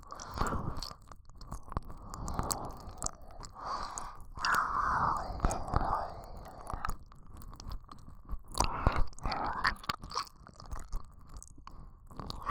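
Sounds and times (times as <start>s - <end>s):
ear licking: 0.0s - 11.5s.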